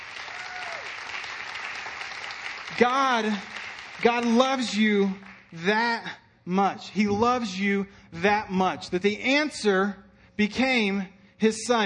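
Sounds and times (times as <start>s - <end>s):
audience clapping: 0.0s - 5.8s
speech: 2.7s - 11.8s.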